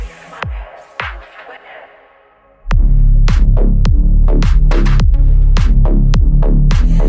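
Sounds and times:
clear 33 to 37 Hz low frequency tone: 2.6 - 7.0.

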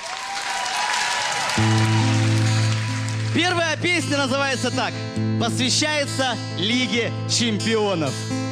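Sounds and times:
audience applause: 0.0 - 4.6
speech: 1.6 - 2.2, 3.4 - 8.4.

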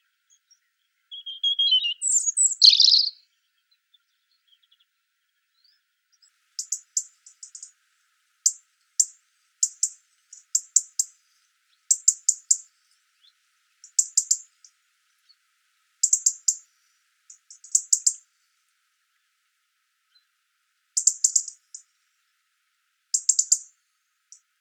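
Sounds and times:
European robin song: 0.0 - 4.9, 5.6 - 15.4, 16.0 - 18.3, 21.0 - 21.9, 23.1 - 24.5
European robin very high ticking notes: 1.1 - 3.2, 6.6 - 7.8, 8.4 - 11.2, 11.9 - 12.7, 13.8 - 14.8, 16.0 - 16.7, 17.3 - 18.2, 21.0 - 21.9, 23.1 - 23.7.

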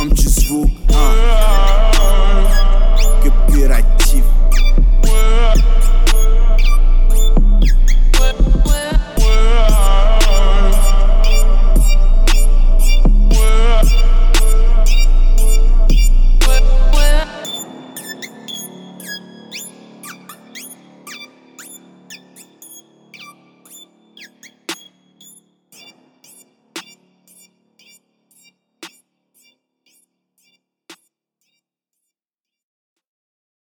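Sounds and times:
29Hz low bass tone: 0.0 - 17.3.

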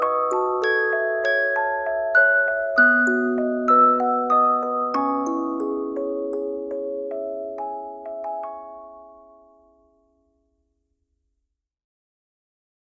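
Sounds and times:
music box: 0.0 - 10.2.

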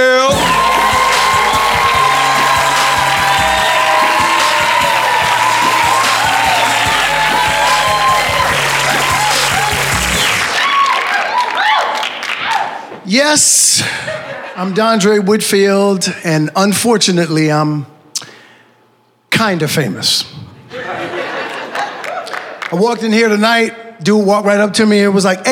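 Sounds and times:
audience applause: 0.3 - 12.8
speech: 13.1 - 17.9, 19.4 - 20.4, 22.7 - 25.5
laughter: 20.7 - 22.6.

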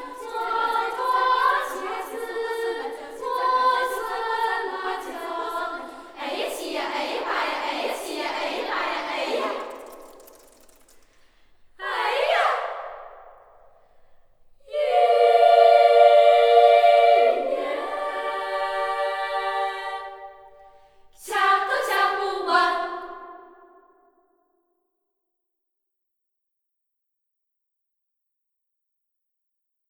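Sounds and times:
children's choir singing: 0.0 - 10.6, 11.8 - 13.4, 14.6 - 23.7.

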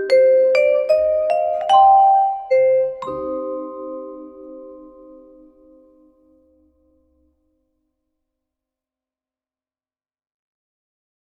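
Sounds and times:
classical jazz cafe music: 0.0 - 6.1.

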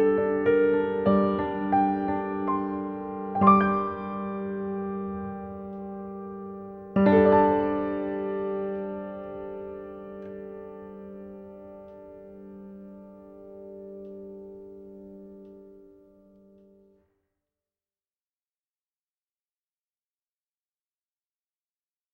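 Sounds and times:
piano: 0.0 - 17.1.

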